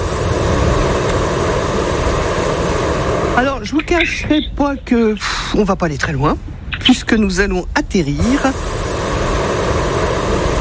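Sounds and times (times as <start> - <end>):
hot air balloon taking off: 0.0 - 4.2, 8.2 - 10.5
speech: 3.4 - 8.8.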